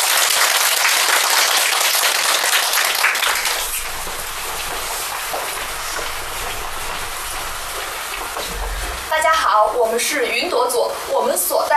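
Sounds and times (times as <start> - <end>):
audience applause: 0.0 - 8.8
speech: 9.9 - 11.7.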